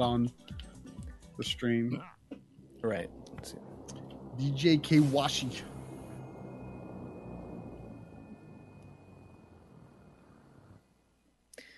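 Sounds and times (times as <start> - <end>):
speech: 0.0 - 0.6, 1.4 - 2.2, 2.8 - 3.7, 4.4 - 5.7
airplane engine in a video game: 2.9 - 10.9.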